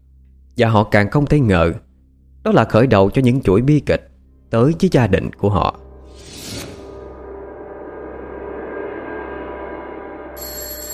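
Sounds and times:
speech: 0.6 - 1.8, 2.4 - 6.3
phone alarm ringing: 10.4 - 10.9.

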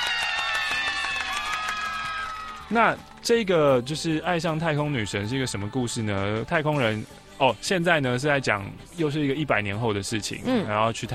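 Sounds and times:
cheering: 0.0 - 3.2
applause: 0.0 - 4.6
speech: 2.7 - 11.1.

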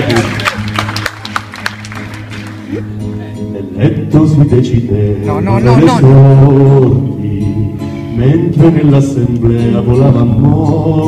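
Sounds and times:
audience applause: 0.0 - 2.8
speech: 3.8 - 7.1, 8.2 - 11.0.

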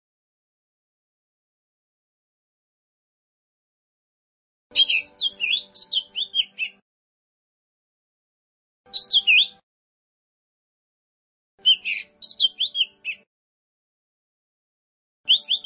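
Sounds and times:
bird song: 4.7 - 6.8, 8.9 - 9.6, 11.6 - 13.3, 15.3 - 15.6.

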